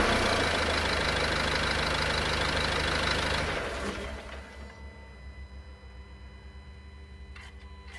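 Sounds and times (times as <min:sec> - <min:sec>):
Renault Master F3500 dCi135 engine starting, idling, revving and shutting down: 0:00.0 - 0:04.7.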